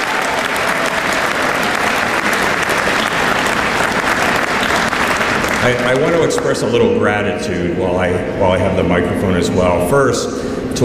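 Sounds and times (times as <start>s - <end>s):
audience applause: 0.0s - 6.7s
speech: 5.6s - 10.8s.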